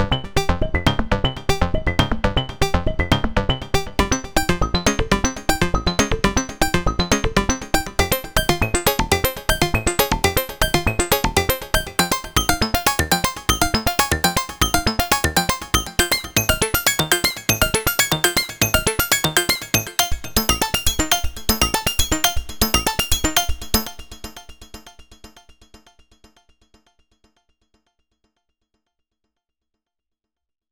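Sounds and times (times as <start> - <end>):
CMI V additive synth robot walk: 0.2 - 23.9.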